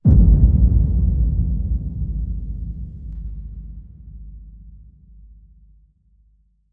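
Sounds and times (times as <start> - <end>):
low hit: 0.0 - 5.7.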